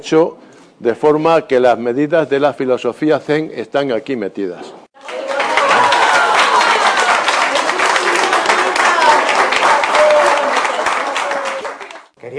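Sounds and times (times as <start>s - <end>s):
speech: 0.0s - 4.8s
audience applause: 5.0s - 12.1s.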